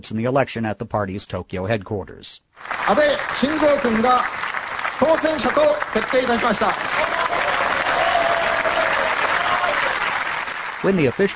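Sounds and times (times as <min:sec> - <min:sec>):
speech: 0:00.0 - 0:07.4, 0:10.8 - 0:11.3
LDP lawmakers in an auditorium at the party's Tokyo headquarters clapping: 0:02.6 - 0:11.3.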